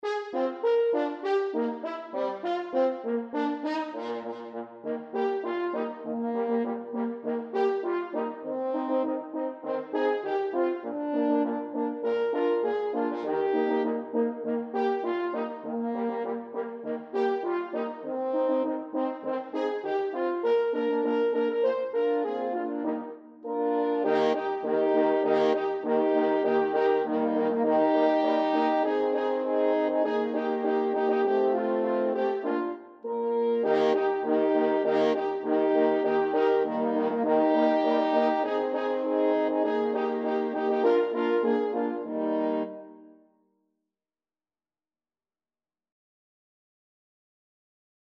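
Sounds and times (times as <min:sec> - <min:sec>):
Christmas song: 0:00.0 - 0:43.2.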